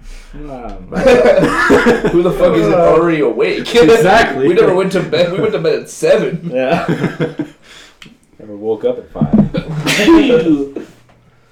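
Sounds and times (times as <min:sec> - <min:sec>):
laughter: 0:00.3 - 0:07.8, 0:09.1 - 0:11.1
speech: 0:00.3 - 0:07.8, 0:08.4 - 0:11.0
loud voiced sneeze: 0:09.4 - 0:10.7.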